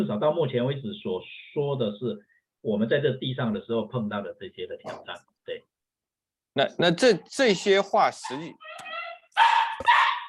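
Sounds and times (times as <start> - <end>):
speech: 0.0 - 5.7, 6.6 - 10.0
dog whining: 8.3 - 10.2.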